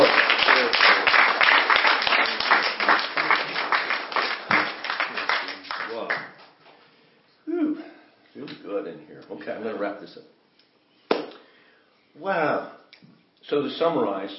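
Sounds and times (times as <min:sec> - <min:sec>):
audience clapping hands in praise: 0:00.0 - 0:06.5
speech: 0:13.5 - 0:14.3.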